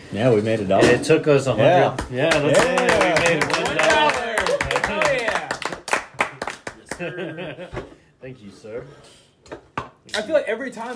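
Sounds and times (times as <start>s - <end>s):
speech: 0.1s - 4.1s, 7.0s - 9.6s, 10.2s - 10.9s
hand claps: 1.9s - 7.3s
laughter: 6.8s - 7.9s.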